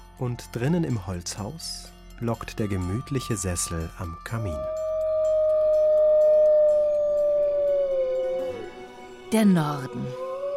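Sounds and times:
speech: 0.2s - 4.9s, 9.3s - 10.2s
wolf howling: 3.1s - 10.5s.

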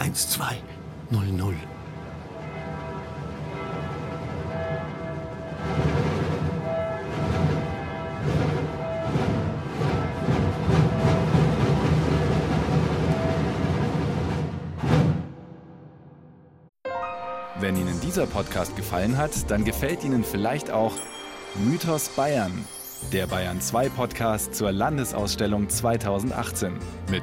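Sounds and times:
Regensburg Cathedral bells ringing: 0.0s - 13.8s, 17.4s - 25.4s
speech: 0.2s - 1.8s, 18.2s - 27.2s
samba drum group crossing the Domplatz: 9.1s - 15.1s.

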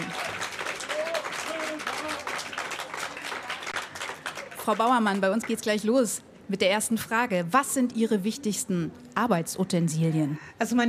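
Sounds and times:
audience applause in Straubing: 0.0s - 5.6s
speech: 4.7s - 10.8s.

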